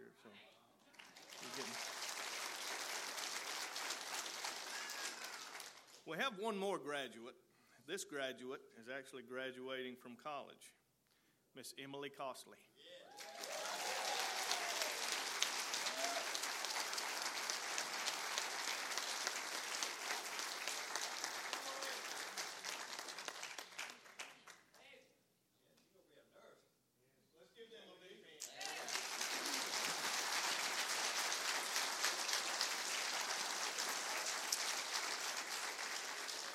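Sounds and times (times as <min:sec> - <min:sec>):
church congregation applause cheering graduates at Hiram First Baptist: 0:00.9 - 0:06.0, 0:13.1 - 0:24.8, 0:28.4 - 0:36.5
speech: 0:06.1 - 0:10.8, 0:11.6 - 0:13.3.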